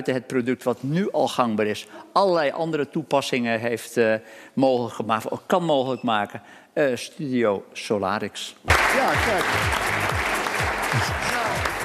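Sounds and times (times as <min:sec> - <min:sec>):
speech: 0:00.0 - 0:10.1, 0:10.9 - 0:11.3
studio audience cheering and applauding: 0:08.7 - 0:11.8.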